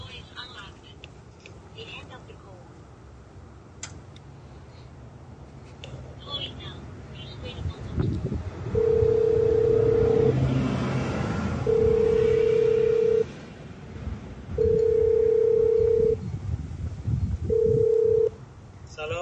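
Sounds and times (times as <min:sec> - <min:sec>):
loud low rumbling noise: 0:00.0 - 0:19.1
telephone ringing tones: 0:08.7 - 0:10.3, 0:11.6 - 0:13.3, 0:14.6 - 0:16.2, 0:17.5 - 0:18.3.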